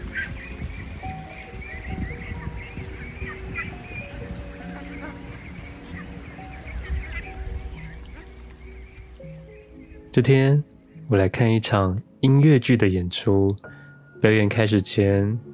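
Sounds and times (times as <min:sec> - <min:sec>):
ducklings and goslings quacking at farm: 0:00.0 - 0:11.4
speech: 0:10.2 - 0:15.5.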